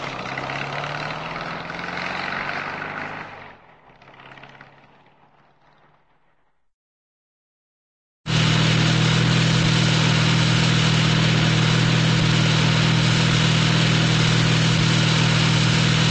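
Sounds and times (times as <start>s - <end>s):
cartoon Volkswagen car starting and pulling away: 0.0s - 6.4s, 8.3s - 16.1s.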